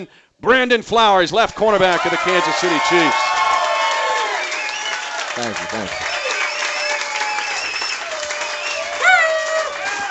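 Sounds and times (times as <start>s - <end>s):
speech: 0.0s - 3.3s, 5.4s - 6.2s
packed indoor bar crowd applauding: 1.6s - 10.0s
cheers and whoops: 1.8s - 10.0s.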